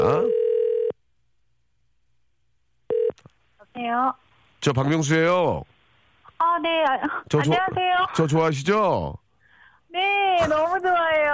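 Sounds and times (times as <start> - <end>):
speech: 0.0 - 0.4, 3.8 - 5.7, 6.4 - 9.2, 9.9 - 11.3
telephone tone: 0.0 - 1.0, 2.9 - 3.2.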